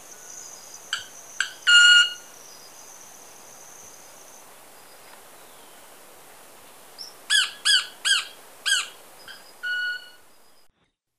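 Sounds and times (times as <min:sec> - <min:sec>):
Club-winged Manakin ringing sustained tone in Ecuador: 0:00.0 - 0:04.3, 0:08.2 - 0:10.7.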